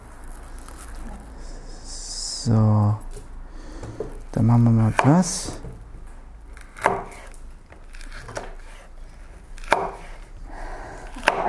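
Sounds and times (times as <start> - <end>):
speech: 2.4 - 3.0, 4.4 - 5.6
chopping food: 4.9 - 5.6, 6.6 - 8.8, 9.6 - 10.2, 11.2 - 11.4.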